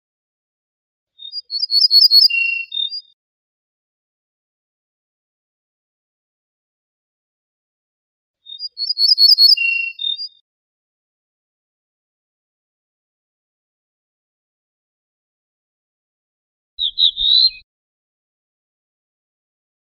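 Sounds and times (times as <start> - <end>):
ortolan bunting singing: 1.2 - 3.2, 8.4 - 10.4, 16.8 - 17.6.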